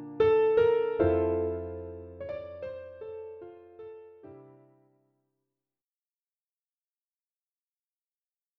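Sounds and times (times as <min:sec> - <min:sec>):
piano piece: 0:00.0 - 0:05.0.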